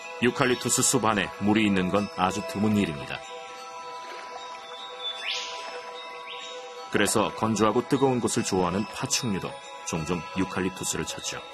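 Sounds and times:
birds chirping in eucalyptus forest: 0:00.0 - 0:08.7
speech: 0:00.2 - 0:03.3, 0:06.9 - 0:11.5
insect-like buzzing hum: 0:03.3 - 0:07.0.

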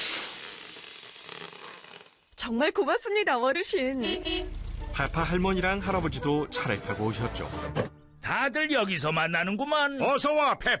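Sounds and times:
air hissing while inflating a tire: 0:00.0 - 0:02.3
speech: 0:02.4 - 0:10.7.

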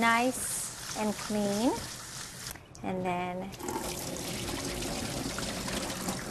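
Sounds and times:
speech: 0:00.0 - 0:02.0, 0:02.8 - 0:04.2
cold water pouring and splashing while rinsing bean sprouts: 0:00.3 - 0:02.6, 0:03.6 - 0:06.3.

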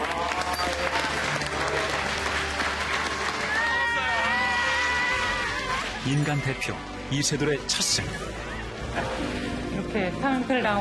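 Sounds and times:
audience applause: 0:00.0 - 0:06.8
speech: 0:06.0 - 0:10.7.

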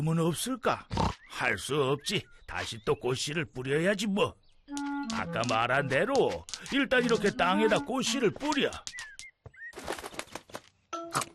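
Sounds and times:
speech: 0:00.0 - 0:09.0
sparrows chirping: 0:00.0 - 0:10.9
rustling flutter of wings: 0:04.7 - 0:10.8.

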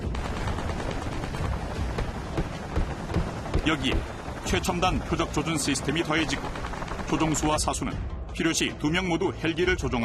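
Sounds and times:
helicopter 30mm chain gun firing: 0:00.1 - 0:04.8, 0:06.0 - 0:07.5
speech: 0:03.7 - 0:10.0.

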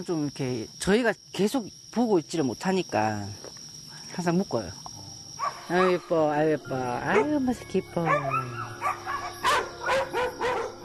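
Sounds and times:
speech: 0:00.0 - 0:03.6, 0:04.2 - 0:04.9, 0:05.7 - 0:08.6
dogs barking at night: 0:05.4 - 0:06.1, 0:07.1 - 0:07.4, 0:08.0 - 0:10.8.

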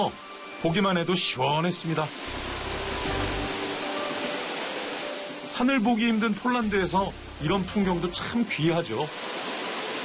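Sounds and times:
speech: 0:00.0 - 0:02.6, 0:05.6 - 0:09.3
waterfall roaring: 0:02.1 - 0:05.4, 0:09.1 - 0:10.0.

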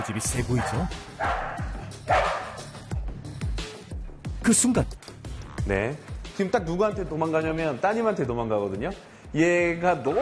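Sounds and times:
speech: 0:00.0 - 0:01.3, 0:04.5 - 0:05.0, 0:05.7 - 0:10.1
dog barking: 0:00.5 - 0:02.7.

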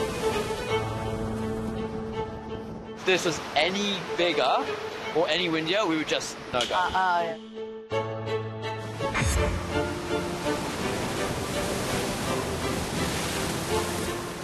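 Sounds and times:
large ocean waves breaking: 0:00.0 - 0:07.2, 0:08.7 - 0:14.4
speech: 0:03.1 - 0:08.1, 0:09.4 - 0:09.8.

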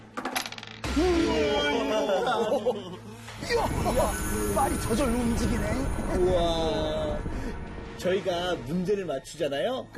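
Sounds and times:
dice rattling and clattering: 0:00.2 - 0:00.8
laughter: 0:01.5 - 0:03.7
speech: 0:02.1 - 0:07.3, 0:08.0 - 0:09.9.

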